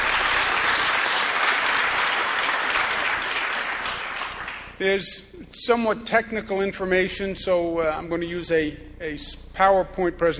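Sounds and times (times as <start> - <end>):
audience applause: 0.0 - 4.8
speech: 4.8 - 10.3.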